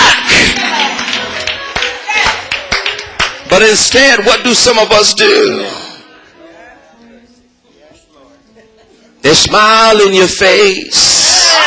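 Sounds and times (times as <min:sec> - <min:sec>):
hand clapping: 0:00.4 - 0:03.6
speech: 0:03.6 - 0:05.8, 0:09.2 - 0:11.6.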